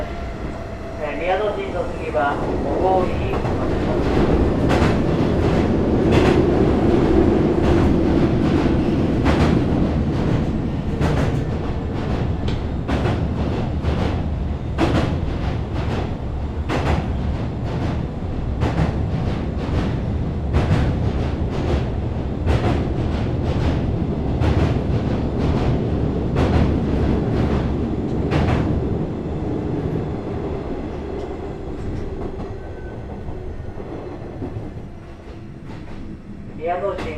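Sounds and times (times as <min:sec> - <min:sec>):
express train running, heard from onboard: 0:00.0 - 0:37.1
speech: 0:01.2 - 0:04.1.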